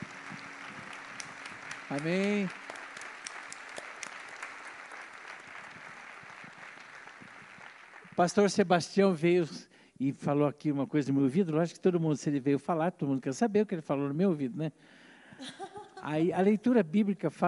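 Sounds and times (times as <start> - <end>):
audience applause: 0.0 - 8.6
speech: 1.9 - 2.6, 8.2 - 17.4.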